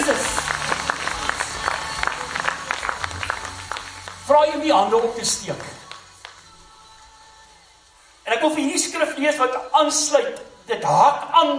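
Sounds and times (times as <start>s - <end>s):
audience clapping hands: 0.0s - 4.6s, 5.2s - 6.6s
speech: 4.3s - 5.8s, 8.4s - 11.5s.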